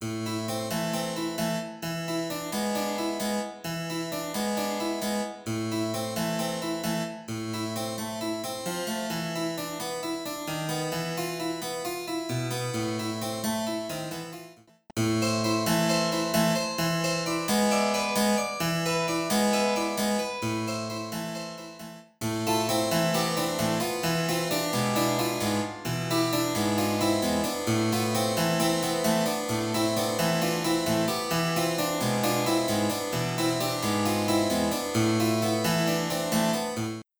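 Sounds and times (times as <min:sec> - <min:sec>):
suite for two harpsichords: 0:00.1 - 0:37.0.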